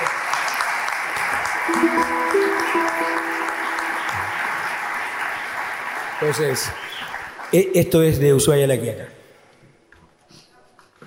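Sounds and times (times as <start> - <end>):
audience applause: 0.0 - 7.8
faint tonal notes: 1.7 - 4.7
speech: 6.2 - 9.2.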